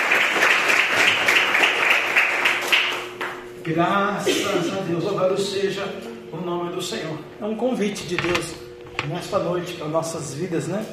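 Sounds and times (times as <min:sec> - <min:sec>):
audience applause: 0:00.0 - 0:03.4
speech: 0:03.6 - 0:10.9.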